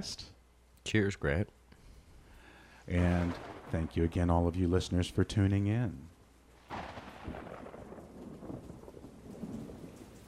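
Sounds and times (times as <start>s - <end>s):
speech: 0.0s - 1.6s, 2.9s - 6.1s
thunderstorm outside: 3.0s - 4.6s, 6.6s - 10.2s.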